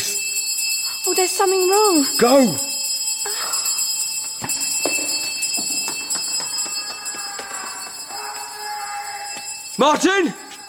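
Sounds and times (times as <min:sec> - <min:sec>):
bell ringing: 0:00.0 - 0:10.6
speech: 0:01.0 - 0:02.7, 0:09.8 - 0:10.4.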